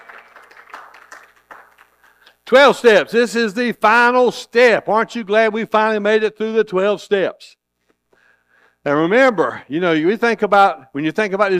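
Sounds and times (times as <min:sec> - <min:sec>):
church congregation clapping hands in praise: 0:00.0 - 0:02.4
speech: 0:02.5 - 0:07.6, 0:08.8 - 0:11.5.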